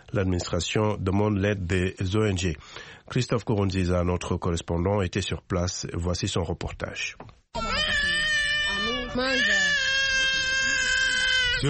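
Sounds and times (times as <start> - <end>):
speech: 0.1 - 7.4, 9.2 - 9.9
hungry baby crying: 7.6 - 11.6.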